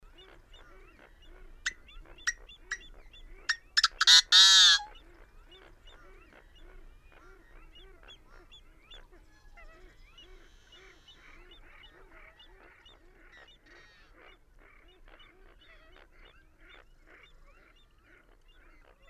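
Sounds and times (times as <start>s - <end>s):
busy chorus of nasal honking bird calls: 1.4s - 5.0s.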